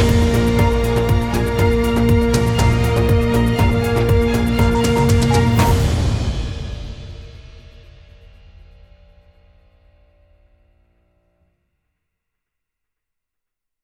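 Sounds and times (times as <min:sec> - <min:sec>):
remix music: 0:00.0 - 0:06.6.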